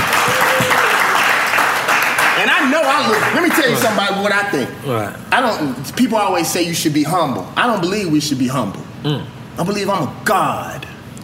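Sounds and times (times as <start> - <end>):
crowd audience applause and cheering: 0.0 - 4.0
speech: 2.6 - 10.9.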